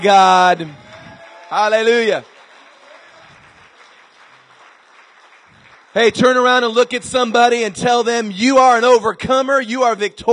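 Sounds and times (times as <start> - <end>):
speech: 0.0 - 0.8, 1.5 - 2.3, 6.0 - 10.3
audience hand clapping: 0.0 - 7.8.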